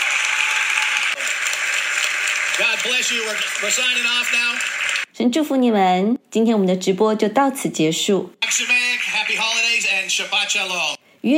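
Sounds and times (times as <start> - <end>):
congregation standing up and clapping: 0.0 - 5.1, 8.4 - 10.9
speech: 2.6 - 11.3.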